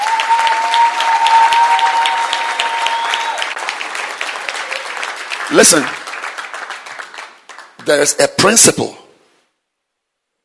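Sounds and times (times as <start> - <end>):
audience clapping: 0.0 - 8.3
speech: 5.5 - 6.0, 7.9 - 9.0.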